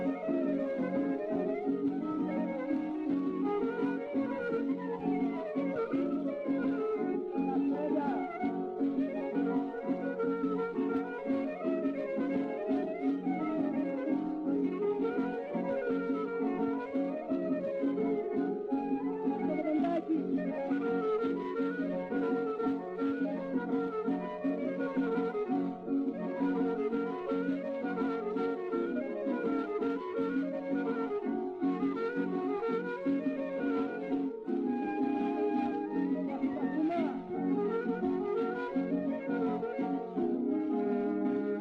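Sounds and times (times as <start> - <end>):
syrtos folk dance tune from 1928: 0.0 - 41.5.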